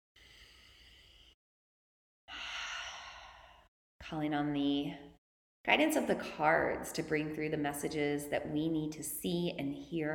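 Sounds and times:
deep breath before a tarot card reading: 0.2 - 1.4, 2.3 - 3.7
speech: 4.0 - 10.1.

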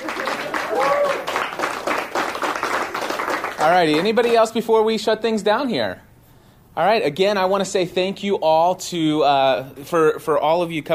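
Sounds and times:
audience applause: 0.0 - 4.4
speech: 3.6 - 6.1, 6.8 - 10.9.

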